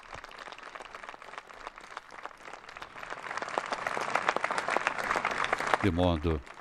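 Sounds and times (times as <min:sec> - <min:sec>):
spontaneous applause from the audience: 0:00.0 - 0:06.5
speech: 0:05.8 - 0:06.5.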